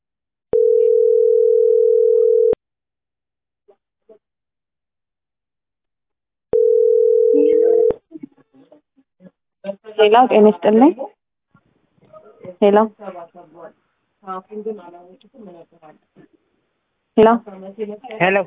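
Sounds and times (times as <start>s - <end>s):
telephone dial tone after the phone is hung up: 0.6s - 2.6s, 6.6s - 8.0s
speech: 10.0s - 11.1s, 12.6s - 16.3s, 17.2s - 18.4s.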